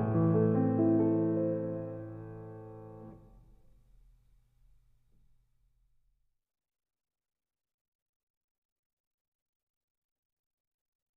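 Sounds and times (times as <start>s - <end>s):
piano: 0.0s - 3.6s.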